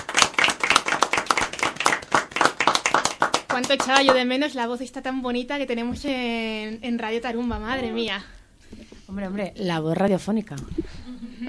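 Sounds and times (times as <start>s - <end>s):
small group applauding: 0.0s - 4.3s
speech: 3.6s - 11.4s.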